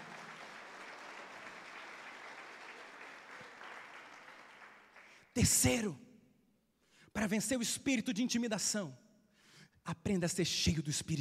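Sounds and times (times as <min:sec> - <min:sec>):
audience applauding: 0:00.0 - 0:05.3
speech: 0:05.4 - 0:06.0, 0:07.2 - 0:09.0, 0:09.8 - 0:11.1.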